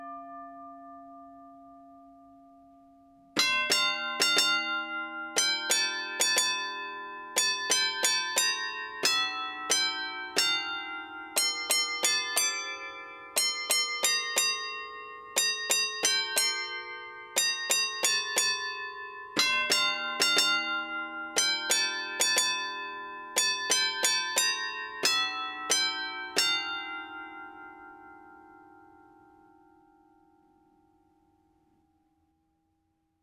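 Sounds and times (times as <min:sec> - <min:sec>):
tram glockenspiel playing a Christmas carol: 0:03.4 - 0:29.7.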